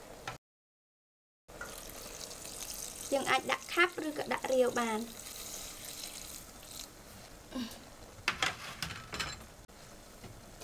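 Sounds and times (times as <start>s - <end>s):
water pouring into a cooking pot of meat: 1.6s - 7.0s
speech: 3.1s - 5.2s, 7.6s - 7.8s.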